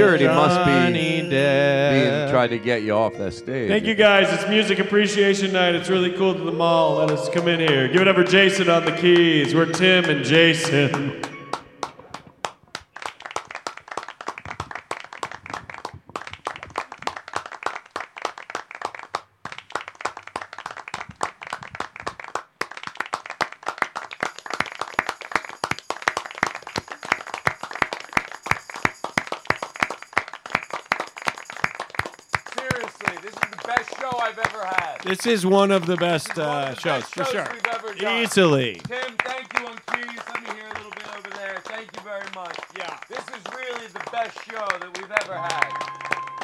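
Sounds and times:
speech: 0.0 - 11.3, 35.2 - 39.2
crowd voices: 0.0 - 11.8, 45.3 - 46.4
audience clapping: 6.9 - 46.4.

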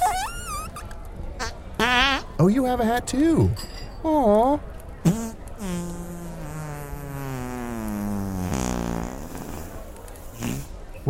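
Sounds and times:
fart: 0.0 - 0.9, 5.0 - 10.8
speech: 1.8 - 6.0.

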